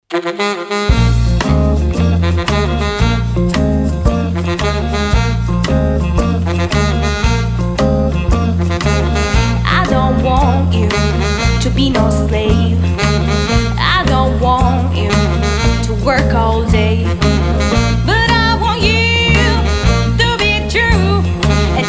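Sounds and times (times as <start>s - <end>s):
blues cover band playing: 0.2s - 21.8s.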